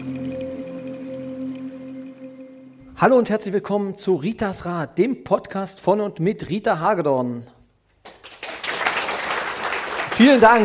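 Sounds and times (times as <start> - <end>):
speech: 3.0 - 7.6, 10.2 - 10.6
spontaneous audience applause: 8.1 - 10.6.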